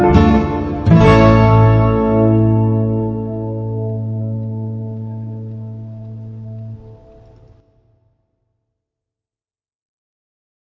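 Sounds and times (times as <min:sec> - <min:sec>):
instrumental music: 0:00.0 - 0:07.6.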